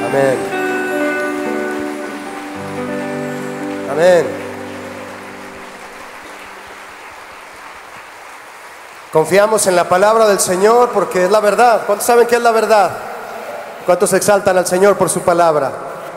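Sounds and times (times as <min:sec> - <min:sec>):
audience applause: 0:00.0 - 0:11.6
speech: 0:00.1 - 0:00.6, 0:04.0 - 0:04.4, 0:09.1 - 0:13.1, 0:13.8 - 0:15.9.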